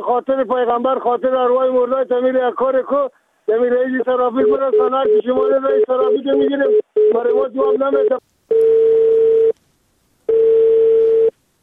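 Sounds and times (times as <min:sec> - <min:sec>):
speech: 0:00.0 - 0:08.7
telephone tone after call disconnected: 0:10.3 - 0:11.3.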